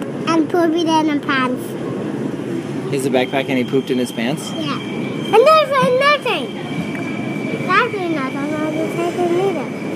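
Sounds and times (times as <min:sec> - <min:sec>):
train coming into a station: 0:00.0 - 0:09.9
speech: 0:00.4 - 0:01.8, 0:02.9 - 0:06.7, 0:07.7 - 0:09.9
thin constant high whine: 0:02.1 - 0:09.9.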